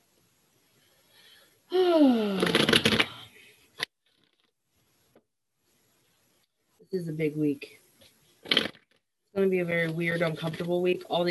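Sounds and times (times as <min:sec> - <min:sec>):
vocal sound: 0:01.7 - 0:03.3
goddess oracle card deck being shuffled: 0:02.3 - 0:03.2, 0:08.4 - 0:09.0
speech: 0:07.0 - 0:07.8, 0:09.4 - 0:11.3.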